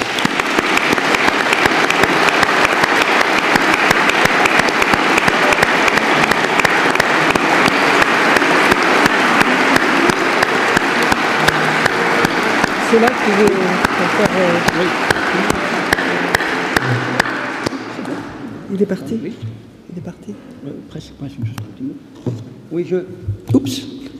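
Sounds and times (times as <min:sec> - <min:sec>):
audience applause: 0:00.0 - 0:18.4
speech: 0:12.9 - 0:13.6, 0:14.2 - 0:15.6, 0:18.8 - 0:24.1.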